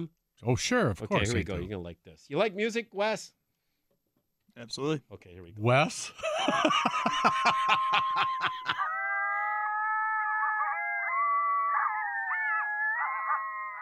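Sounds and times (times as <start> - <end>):
speech: 0.0 - 3.4, 4.6 - 8.9
laughter: 6.2 - 8.9
coyotes yipping and howling: 7.2 - 13.7.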